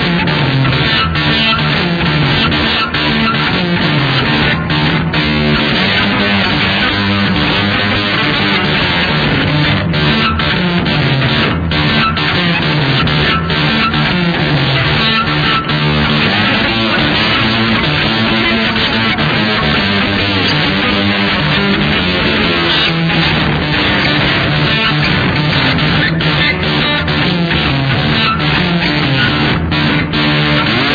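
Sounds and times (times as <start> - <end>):
lap steel guitar in open D tuning: 0.0 - 30.9.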